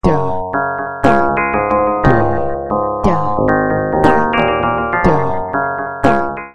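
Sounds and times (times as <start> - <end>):
synthesizer sequence: 0.1 - 6.5.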